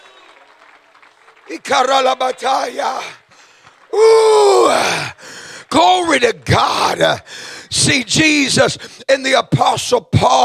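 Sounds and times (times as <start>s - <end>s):
audience clapping hands: 0.0s - 7.6s
speech: 1.5s - 3.2s, 3.9s - 5.1s, 5.7s - 10.4s.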